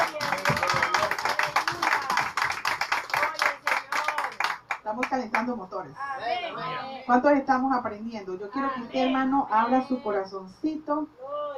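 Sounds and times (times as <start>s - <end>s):
audience applauding: 0.0s - 4.8s
speech: 5.0s - 11.2s.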